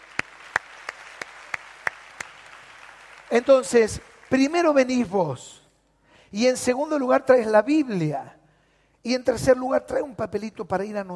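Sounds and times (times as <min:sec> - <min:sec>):
audience applause: 0:00.0 - 0:04.7
speech: 0:03.3 - 0:05.6, 0:06.3 - 0:08.4, 0:09.0 - 0:11.1.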